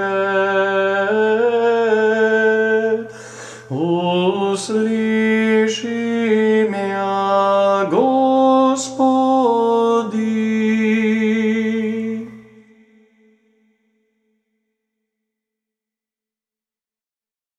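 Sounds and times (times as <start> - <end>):
Serbian Orthodox chant in fourth tone: 0.0 - 13.4.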